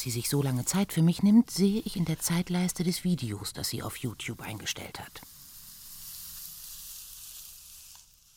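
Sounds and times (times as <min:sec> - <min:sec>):
speech: 0:00.0 - 0:05.4
hair being combed: 0:00.6 - 0:02.9, 0:04.4 - 0:08.3.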